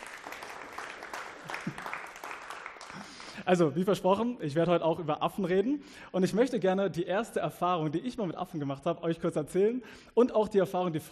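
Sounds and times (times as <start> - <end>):
audience applause: 0.0 - 3.4
speech: 3.5 - 11.0.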